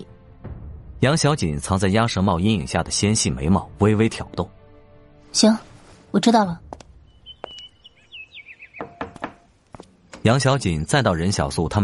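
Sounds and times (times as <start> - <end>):
speech: 1.0 - 4.6, 5.3 - 6.8, 10.2 - 11.8
knocking on a door: 8.8 - 9.5.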